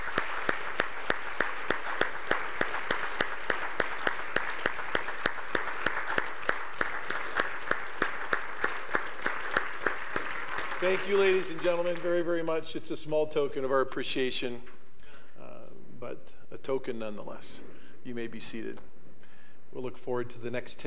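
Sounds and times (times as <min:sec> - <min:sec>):
audience applause: 0:00.0 - 0:12.2
speech: 0:10.8 - 0:14.7, 0:16.7 - 0:18.9, 0:19.7 - 0:20.8.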